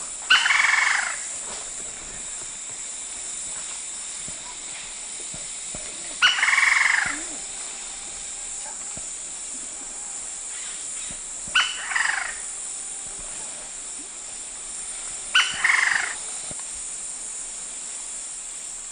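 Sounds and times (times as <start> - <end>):
lineated woodpecker: 0.3 - 1.3, 5.4 - 8.0, 10.5 - 12.5, 15.3 - 16.6.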